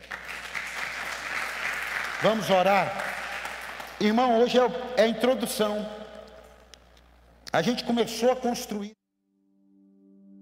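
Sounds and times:
crowd applause: 0.0s - 4.6s
speech: 2.2s - 3.0s, 4.0s - 6.0s, 7.6s - 9.0s.

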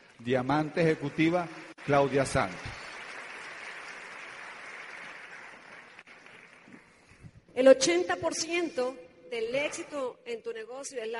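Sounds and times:
speech: 0.2s - 2.8s, 7.6s - 11.1s
audience applause: 0.8s - 7.1s.

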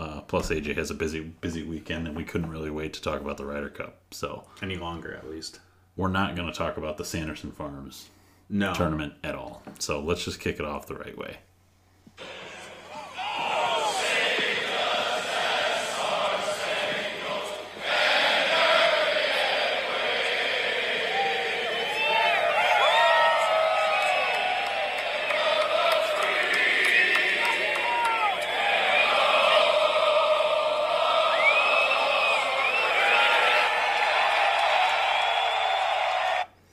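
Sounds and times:
speech: 0.3s - 11.5s
golf crowd cheering at Ryder Cup first tee: 12.2s - 36.5s
shrill whistles and whoops: 21.1s - 24.9s, 27.4s - 29.3s, 31.0s - 36.5s.

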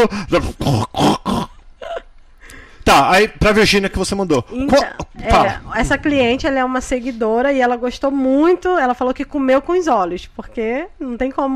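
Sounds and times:
speech: 0.0s - 1.2s, 2.9s - 11.5s
burp: 0.1s - 1.6s.

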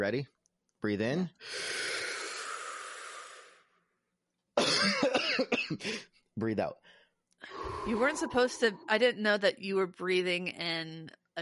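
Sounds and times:
speech: 0.0s - 1.9s, 4.8s - 11.4s
loud cough: 4.6s - 6.0s.

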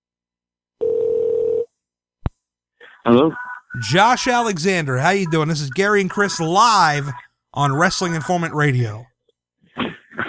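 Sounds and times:
telephone line ringing on a call: 0.8s - 1.7s
speech: 3.0s - 9.1s.

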